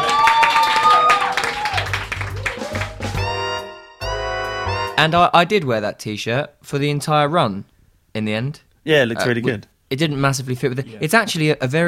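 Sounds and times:
cheers and whoops: 0.0 - 3.3
audience applause: 0.0 - 3.4
speech: 5.0 - 11.8.

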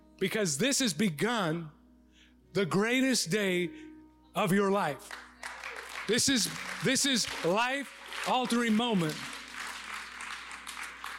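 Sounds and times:
speech: 0.2 - 1.8, 2.5 - 5.3, 6.1 - 9.3
light polite golf-clap applause: 5.0 - 11.1.

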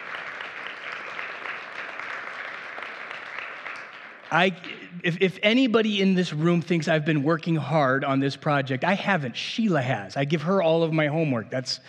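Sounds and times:
audience applause: 0.0 - 4.9
speech: 4.3 - 11.8.

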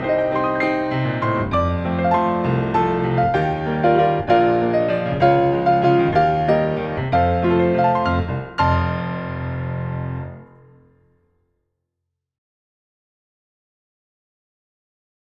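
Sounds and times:
majestic grand allegro waltz: 0.0 - 10.5.

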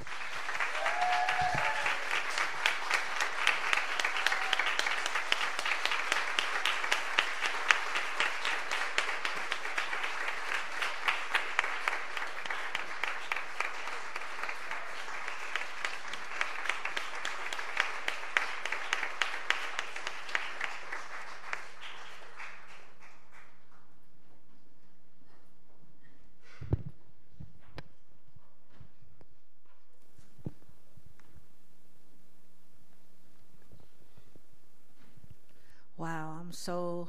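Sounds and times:
audience applause welcoming a speaker to a faith gathering: 0.0 - 23.8.

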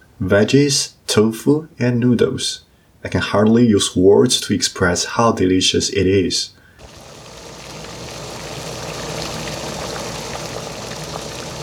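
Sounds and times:
speech: 0.2 - 6.6
hot pot broth boiling: 6.8 - 11.6.

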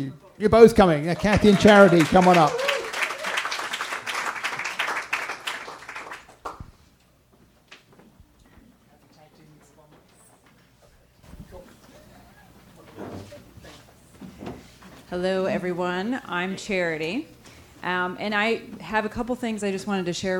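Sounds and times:
speech: 0.0 - 2.6, 15.2 - 20.3
audience applause: 1.0 - 6.6.

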